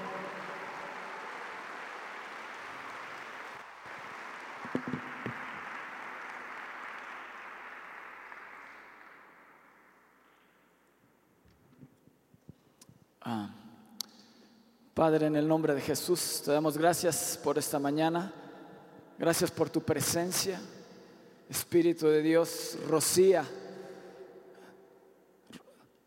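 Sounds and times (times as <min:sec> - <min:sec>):
audience applauding loudly: 0:00.0 - 0:10.4
speech: 0:04.7 - 0:05.1, 0:13.3 - 0:13.6, 0:15.0 - 0:18.4, 0:19.2 - 0:20.8, 0:21.5 - 0:23.6.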